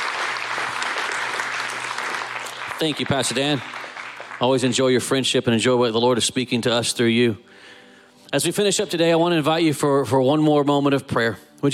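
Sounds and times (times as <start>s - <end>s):
audience applause: 0.0s - 5.2s
speech: 2.8s - 3.8s, 4.4s - 11.7s.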